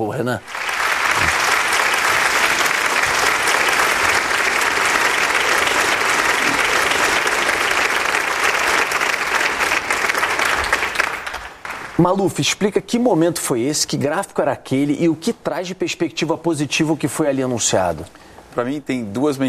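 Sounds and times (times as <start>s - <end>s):
speech: 0.0s - 1.4s, 12.0s - 19.4s
doctors applauding at medical conference: 0.4s - 12.1s.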